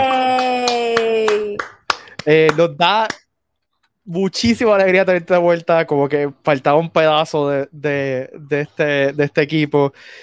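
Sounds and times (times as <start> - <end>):
hand clapping: 0.0 - 3.3
speech: 2.3 - 3.2, 4.0 - 10.2.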